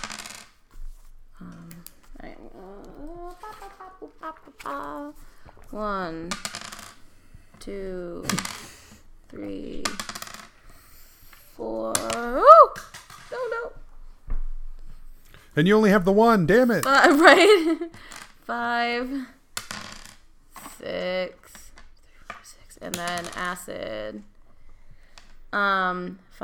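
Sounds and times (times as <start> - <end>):
dice rattling on a hard surface: 0.0 - 0.6, 1.8 - 7.1, 8.2 - 9.0, 9.7 - 13.4, 19.6 - 20.8, 21.4 - 23.7
murmured voices: 1.5 - 5.2
speech: 4.4 - 6.6, 7.6 - 8.6, 9.3 - 10.1, 11.6 - 12.5, 15.6 - 19.4, 20.9 - 21.4, 22.8 - 24.3, 25.5 - 26.4.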